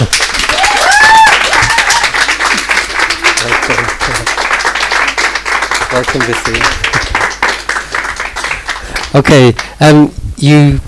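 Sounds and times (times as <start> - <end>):
audience applauding: 0.0 - 9.7
cheering whoops: 0.4 - 2.4
speech: 6.0 - 6.8, 9.1 - 10.8.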